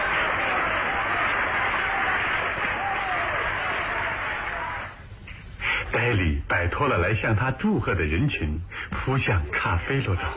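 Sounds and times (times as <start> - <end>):
enthusiastic applause after a performance: 0.0 - 5.0
speech: 6.1 - 10.3.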